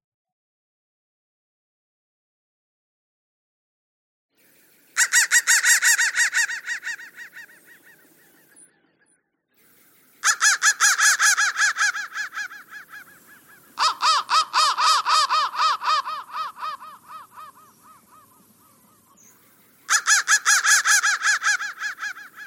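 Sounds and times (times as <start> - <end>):
crow cawing: 5.0 - 8.2, 10.2 - 19.2, 19.9 - 22.4.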